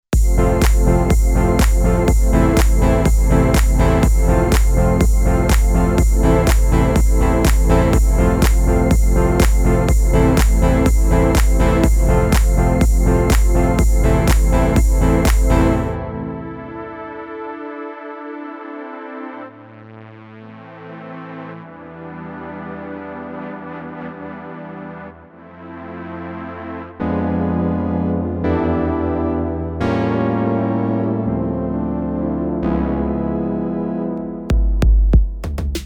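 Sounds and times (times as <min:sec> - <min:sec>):
deep house music: 0:00.1 - 0:35.8.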